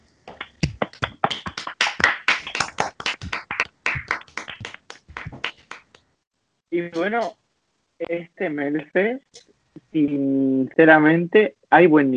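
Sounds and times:
hand clapping: 0.3s - 6.1s, 7.0s - 7.3s
speech: 6.8s - 7.4s, 8.0s - 9.3s, 9.9s - 12.1s.

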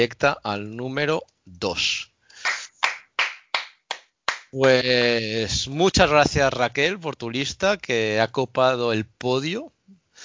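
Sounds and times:
speech: 0.0s - 2.6s, 4.5s - 10.2s
hand claps: 2.4s - 4.8s.

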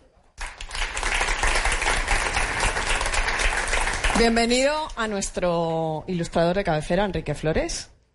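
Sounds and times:
audience applauding: 0.4s - 4.8s
speech: 4.2s - 7.9s.

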